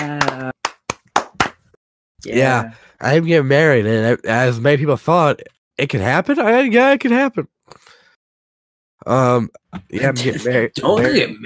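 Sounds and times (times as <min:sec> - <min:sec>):
speech: 0:00.0 - 0:00.6, 0:02.2 - 0:08.0, 0:09.0 - 0:11.4
applause: 0:00.0 - 0:01.7.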